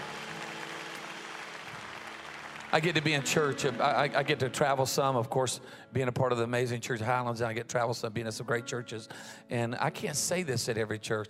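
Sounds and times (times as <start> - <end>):
audience clapping hands: 0.0 - 5.1
speech: 2.7 - 11.2.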